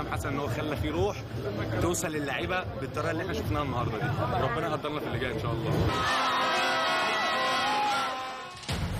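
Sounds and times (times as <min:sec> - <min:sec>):
speech: 0:00.0 - 0:06.8
football fans cheering: 0:05.9 - 0:08.9.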